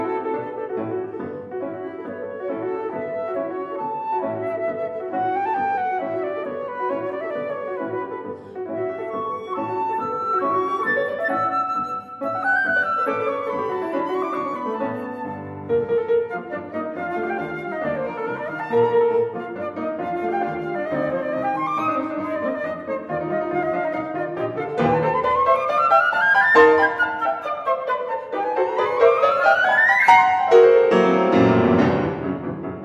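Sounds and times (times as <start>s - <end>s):
flute sonatina: 0.0s - 32.8s.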